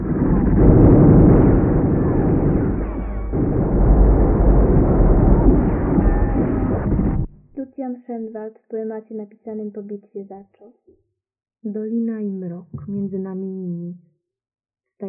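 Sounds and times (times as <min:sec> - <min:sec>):
light artillery cannonade: 0:00.0 - 0:07.3
speech: 0:08.2 - 0:11.0, 0:11.6 - 0:14.1.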